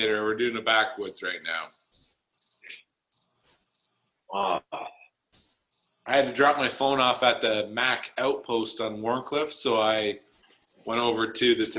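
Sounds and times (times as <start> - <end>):
speech: 0.0 - 1.8, 4.3 - 5.0, 6.1 - 11.7
crickets chirping: 0.0 - 4.1, 5.7 - 11.6
soft rustling: 10.2 - 10.8.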